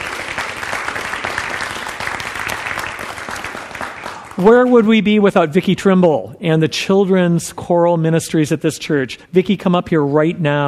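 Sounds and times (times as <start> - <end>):
audience applause: 0.0 - 4.9
speech: 4.4 - 10.6.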